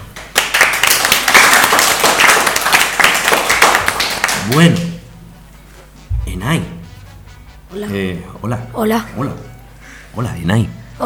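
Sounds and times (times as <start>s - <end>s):
group applause: 0.0s - 5.0s
speech: 4.5s - 4.9s, 6.5s - 6.7s, 7.7s - 9.5s, 10.1s - 11.0s.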